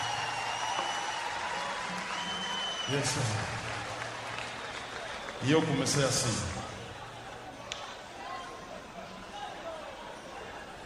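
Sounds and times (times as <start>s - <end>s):
audience applause: 0.0s - 7.4s
speech: 2.9s - 3.6s, 5.4s - 6.7s.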